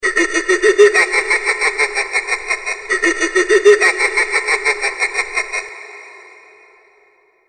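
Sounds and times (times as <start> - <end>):
evil laugh: 0.0 - 6.7.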